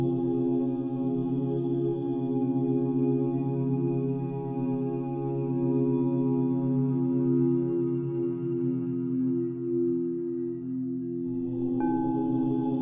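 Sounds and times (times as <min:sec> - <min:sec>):
person chanting OM: 0:00.0 - 0:12.7
singing bowls: 0:09.1 - 0:12.7.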